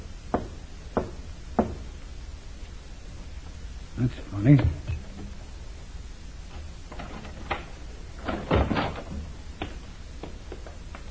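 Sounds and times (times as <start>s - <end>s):
low hum: 0.0s - 11.1s
knocks on a side door: 0.3s - 1.8s
speech: 4.0s - 5.0s.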